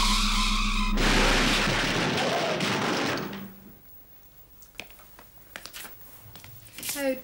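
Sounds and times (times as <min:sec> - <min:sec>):
test car crashing: 0:00.1 - 0:03.8
debris clattering: 0:01.0 - 0:03.8.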